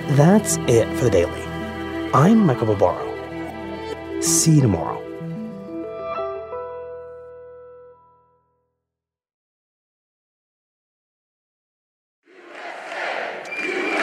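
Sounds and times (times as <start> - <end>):
speech: 0.1 - 1.4, 2.1 - 3.1, 4.2 - 5.0
rally crowd cheering: 12.3 - 14.0.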